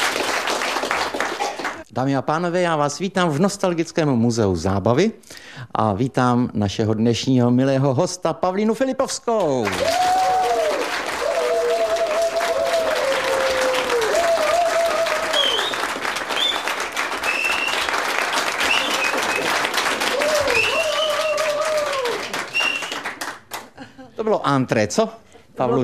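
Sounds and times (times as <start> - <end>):
audience applause at an entertainment show: 0.0 - 1.8, 9.6 - 23.8
speech: 2.0 - 10.2, 24.5 - 25.8.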